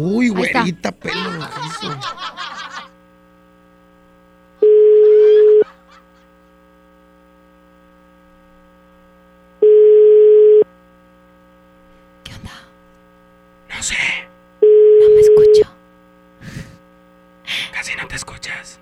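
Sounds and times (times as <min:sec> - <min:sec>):
speech: 0:00.0 - 0:02.6
laughter: 0:00.3 - 0:03.0, 0:05.0 - 0:06.6
telephone line electronic ring tone: 0:04.6 - 0:05.6, 0:09.6 - 0:10.6, 0:14.6 - 0:15.6
telephone dialing tones: 0:09.6 - 0:10.6.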